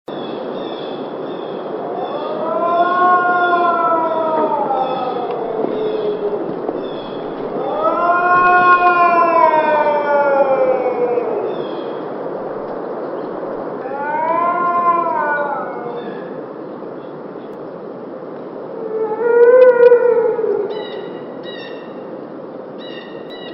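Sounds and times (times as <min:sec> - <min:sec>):
dog howling and moaning: 0:01.8 - 0:12.7, 0:13.6 - 0:16.4, 0:18.8 - 0:20.8.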